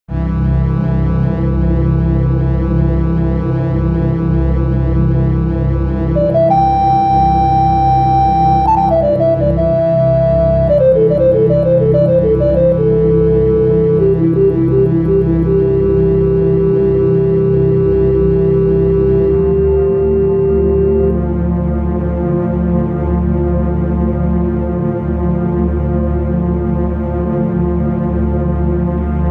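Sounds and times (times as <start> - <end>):
ambient music: 0.2 - 29.2.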